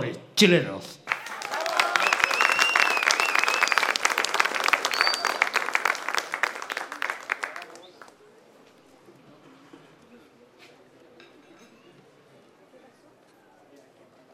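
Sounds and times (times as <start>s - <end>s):
speech: 0.4s - 1.0s
crowd applauding Chilean payadores: 1.1s - 8.2s
group of supporters cheering: 1.1s - 8.2s
high whistles: 1.2s - 6.2s.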